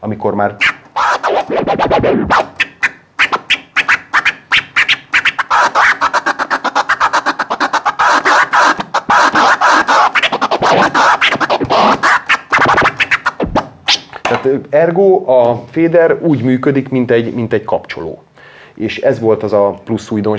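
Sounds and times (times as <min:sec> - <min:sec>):
speech: 0:00.0 - 0:00.8, 0:01.5 - 0:02.5, 0:14.4 - 0:20.3
DJ turntable scratching: 0:00.5 - 0:14.5.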